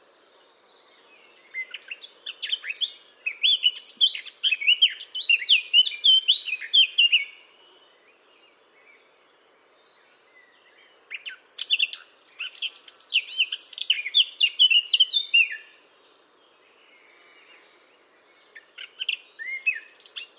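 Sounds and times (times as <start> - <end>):
low hiss: 0.0 - 20.3
Eurasian blackcap scratchy warble and fluty whistles: 0.8 - 8.6, 9.9 - 15.8, 18.5 - 20.3.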